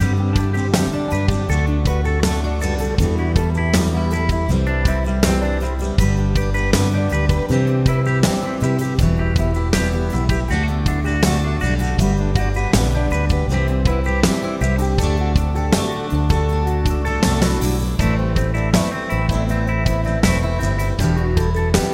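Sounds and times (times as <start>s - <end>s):
country pop music: 0.0s - 21.9s.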